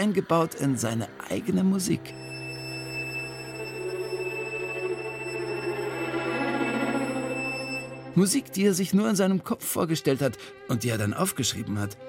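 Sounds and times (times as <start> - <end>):
speech: 0.0 - 2.3, 8.2 - 12.0
high whistling tone: 0.0 - 8.6.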